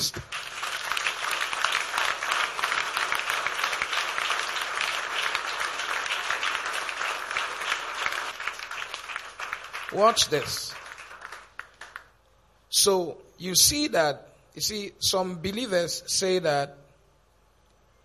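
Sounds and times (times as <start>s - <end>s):
audience applause: 0.0s - 12.1s
speech: 9.9s - 10.7s, 12.8s - 16.8s.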